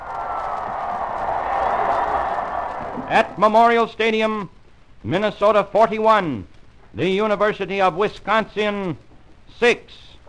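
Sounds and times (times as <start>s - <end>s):
stadium crowd roaring and cheering: 0.0s - 4.2s
speech: 3.1s - 10.1s.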